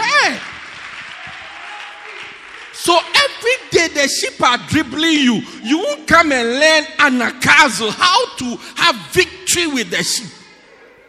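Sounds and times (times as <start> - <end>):
crowd applauding: 0.0 - 3.6
speech: 3.9 - 10.4.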